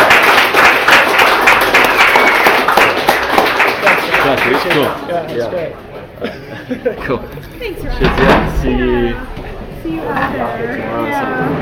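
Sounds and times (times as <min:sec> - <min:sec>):
audience applause: 0:00.0 - 0:05.2
speech: 0:04.8 - 0:11.6
laughter: 0:06.2 - 0:07.8.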